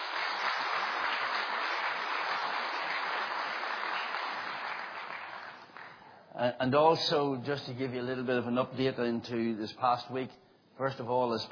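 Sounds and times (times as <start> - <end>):
audience applause: 0.0 - 6.0
speech: 6.4 - 11.5.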